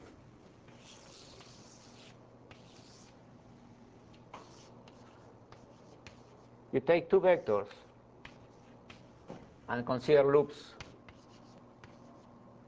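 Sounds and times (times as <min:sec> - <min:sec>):
writing on a board during a mathematics lecture: 0:00.7 - 0:03.2, 0:04.2 - 0:06.5, 0:07.4 - 0:09.4, 0:10.8 - 0:12.4
speech: 0:06.7 - 0:07.8, 0:09.7 - 0:10.8.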